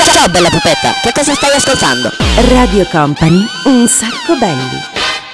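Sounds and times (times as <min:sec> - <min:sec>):
speech: 0:00.2 - 0:05.0
upbeat show theme jingle with brassy stabs and synth lines: 0:02.2 - 0:05.0.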